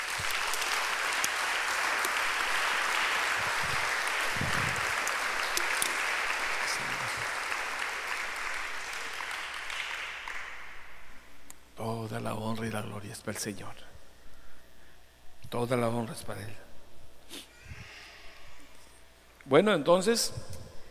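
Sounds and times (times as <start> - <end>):
audience applause: 0.0 - 11.0
speech: 12.1 - 13.9, 15.5 - 16.7, 19.5 - 20.6.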